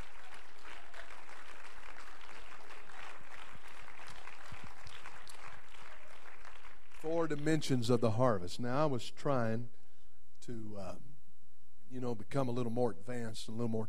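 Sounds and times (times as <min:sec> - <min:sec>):
audience clapping hands: 0:00.0 - 0:08.1
speech: 0:07.0 - 0:09.8, 0:10.4 - 0:11.1, 0:11.9 - 0:13.8.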